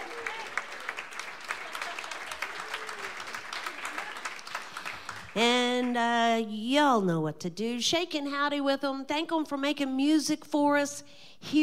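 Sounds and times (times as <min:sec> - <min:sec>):
audience applause: 0:00.0 - 0:05.4
speech: 0:05.4 - 0:11.6.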